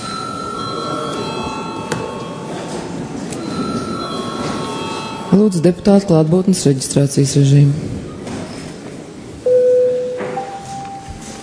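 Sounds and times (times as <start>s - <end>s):
electric parliament session bell ringing: 0.0s - 6.3s, 9.5s - 11.4s
speech: 5.3s - 7.9s.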